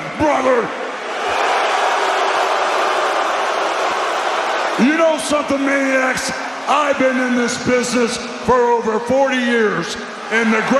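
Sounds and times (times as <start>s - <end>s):
speech: 0.2s - 0.8s, 4.8s - 10.7s
large crowd booing: 0.8s - 6.7s, 10.2s - 10.7s.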